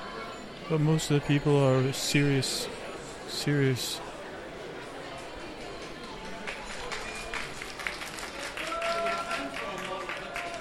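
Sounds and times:
speech: 0:00.7 - 0:04.1
audience applause: 0:05.8 - 0:10.5.

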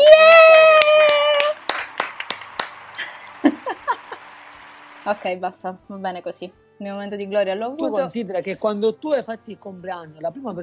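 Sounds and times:
person cheering: 0:00.0 - 0:04.5
people clapping: 0:00.0 - 0:05.3
laughter: 0:01.9 - 0:04.6
speech: 0:05.1 - 0:10.6.

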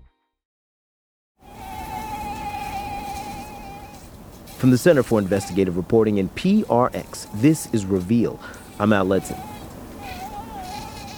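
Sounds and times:
Aedes aegypti mosquitoes carrying Zika virus buzzing: 0:01.4 - 0:11.1
speech: 0:04.6 - 0:09.5.

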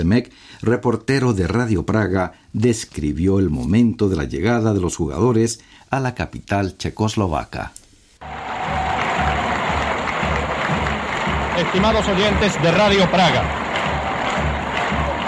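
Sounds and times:
speech: 0:00.0 - 0:08.4, 0:11.6 - 0:13.6
stadium crowd applauding and cheering: 0:08.2 - 0:15.2.

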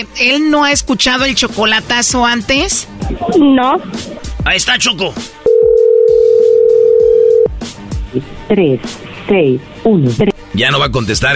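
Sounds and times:
speech: 0:00.0 - 0:05.4, 0:08.1 - 0:11.3
loud telephone dial tone: 0:05.5 - 0:07.5.

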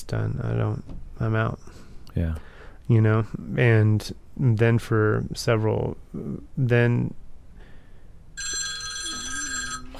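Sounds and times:
speech: 0:00.0 - 0:07.2
faint chime: 0:08.4 - 0:09.9
phone ringing with a bright electronic trill: 0:08.4 - 0:09.9.

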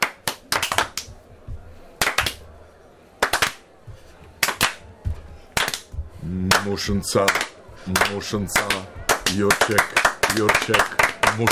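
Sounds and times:
rhythmic group clapping: 0:00.0 - 0:01.3, 0:02.0 - 0:02.5, 0:03.2 - 0:03.6, 0:04.3 - 0:11.4
quiet murmuring: 0:00.0 - 0:11.4
speech: 0:06.7 - 0:11.4.

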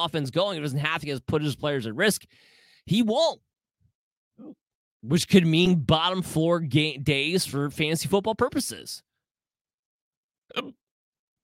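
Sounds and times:
speech: 0:00.0 - 0:03.5, 0:04.4 - 0:09.1, 0:10.5 - 0:10.8
man hiccupping: 0:10.5 - 0:10.9.

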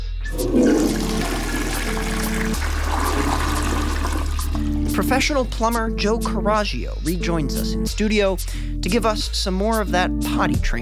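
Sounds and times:
toilet flushing and refilling: 0:00.3 - 0:05.1
speech: 0:05.0 - 0:10.7.

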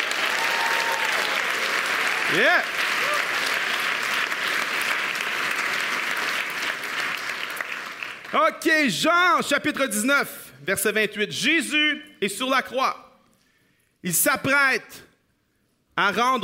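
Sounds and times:
audience applauding: 0:00.0 - 0:08.4
speech: 0:02.3 - 0:02.8, 0:08.3 - 0:13.0, 0:14.0 - 0:15.1, 0:16.0 - 0:16.4.

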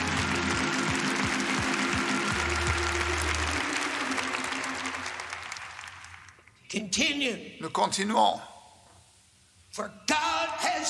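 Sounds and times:
church congregation cheering and applauding: 0:00.0 - 0:06.5
speech: 0:06.7 - 0:08.5, 0:09.8 - 0:10.8.

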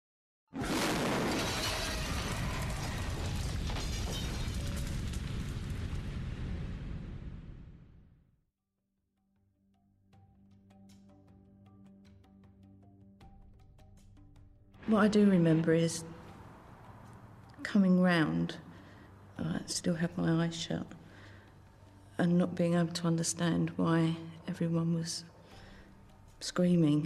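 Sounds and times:
bomb explosion: 0:00.6 - 0:08.2
speech: 0:14.9 - 0:16.1, 0:17.7 - 0:18.7, 0:19.4 - 0:21.0, 0:22.2 - 0:25.3, 0:26.4 - 0:27.0.

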